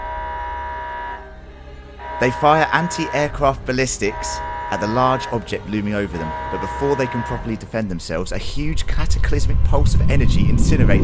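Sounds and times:
military base alarm sirens blaring: 0.0 - 1.4, 2.0 - 7.5
speech: 2.2 - 11.0.

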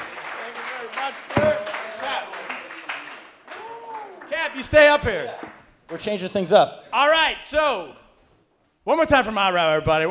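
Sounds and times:
audience applause: 0.0 - 4.4
speech: 1.1 - 1.7, 4.5 - 8.0, 8.8 - 10.0.

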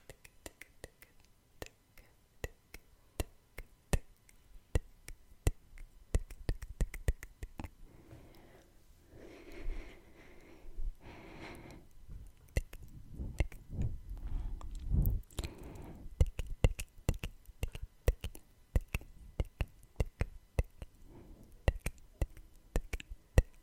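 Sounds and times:
wet tongue clicks: 0.0 - 7.8, 11.6 - 13.7, 14.6 - 23.6
kissing smacks: 2.4 - 7.7, 12.5 - 13.7, 16.2 - 21.0, 21.6 - 23.6.

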